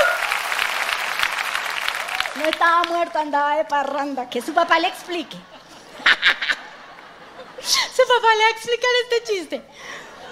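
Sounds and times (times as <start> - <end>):
audience applause: 0.0 - 3.2
speech: 2.4 - 5.5, 7.6 - 10.0
laughter: 4.3 - 8.1, 9.8 - 10.2.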